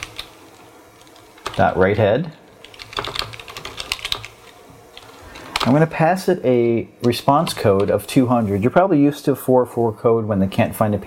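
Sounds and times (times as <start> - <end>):
typing code on a computer keyboard: 0.0 - 1.7, 2.6 - 5.8
speech: 1.6 - 2.4, 5.6 - 11.0.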